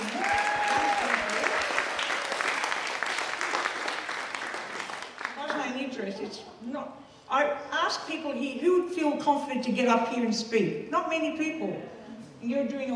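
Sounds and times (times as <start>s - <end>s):
loud audience applause: 0.0s - 5.6s
speech: 6.3s - 12.9s.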